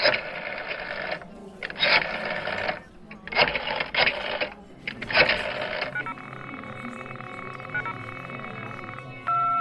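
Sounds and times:
choppy intermittent sound: 0:00.0 - 0:09.6
continuous telephone beep tone: 0:05.5 - 0:09.6.

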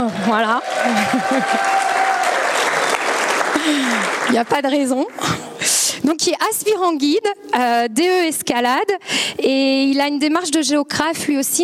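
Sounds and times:
speech: 0:00.0 - 0:02.0, 0:03.6 - 0:11.6
audience applause: 0:00.0 - 0:05.1
cheers: 0:00.1 - 0:04.3
laughter: 0:00.8 - 0:01.9.

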